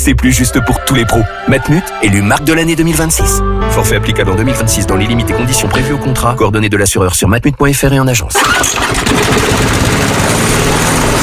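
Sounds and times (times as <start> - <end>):
speech: 0.0 - 10.2
lawn mower engine running: 8.4 - 11.2.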